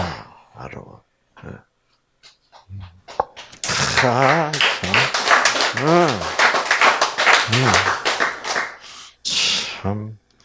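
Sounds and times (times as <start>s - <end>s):
speech: 0.6s - 2.8s, 4.0s - 5.0s, 5.8s - 6.3s, 7.5s - 8.0s, 9.8s - 10.2s
lecture audience clapping: 3.1s - 8.9s
people laughing: 3.6s - 8.8s.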